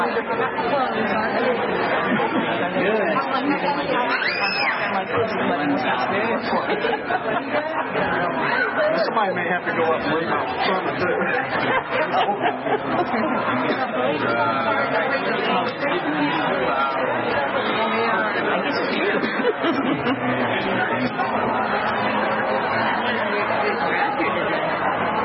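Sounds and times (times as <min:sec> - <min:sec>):
crowd chatter: 0:00.0 - 0:25.2
laughter: 0:02.1 - 0:02.7, 0:06.5 - 0:07.8, 0:11.4 - 0:13.9, 0:18.9 - 0:20.4
speech: 0:05.2 - 0:22.3.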